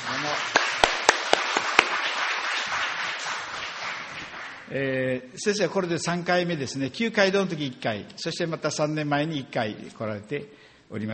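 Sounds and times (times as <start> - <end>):
applause: 0.0 - 4.7
speech: 4.7 - 11.1.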